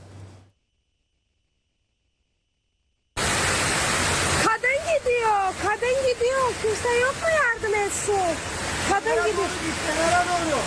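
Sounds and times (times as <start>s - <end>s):
floodwater rushing through streets after downpour: 3.2s - 10.6s
speech: 6.2s - 10.6s.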